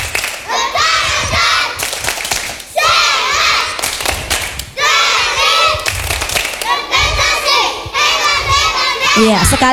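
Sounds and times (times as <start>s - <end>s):
kindergarten children's rhythmic clapping chant: 0.0s - 9.7s.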